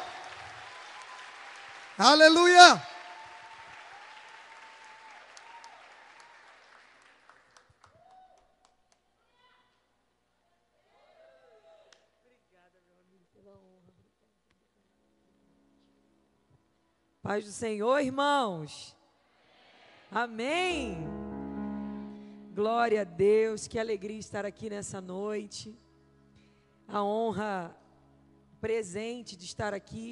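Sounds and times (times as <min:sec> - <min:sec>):
audience applause: 0:00.0 - 0:08.2
speech: 0:02.0 - 0:02.9, 0:17.3 - 0:19.0, 0:20.1 - 0:21.2, 0:22.6 - 0:25.8, 0:26.9 - 0:27.8, 0:28.6 - 0:30.0.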